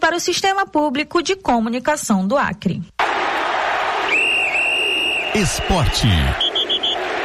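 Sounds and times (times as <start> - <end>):
speech: 0.1 - 3.0, 5.4 - 6.4
whistle blown: 4.1 - 7.1.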